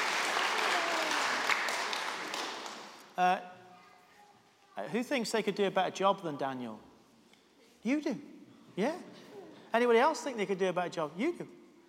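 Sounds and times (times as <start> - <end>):
audience applause: 0.0 - 3.0
speech: 3.2 - 3.5, 4.8 - 6.9, 7.8 - 11.6.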